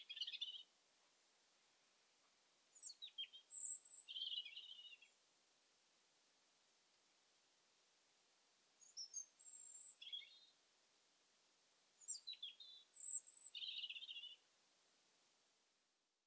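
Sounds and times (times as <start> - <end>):
European robin singing: 0.0 - 0.7, 2.7 - 5.2, 8.8 - 10.6, 12.0 - 14.4.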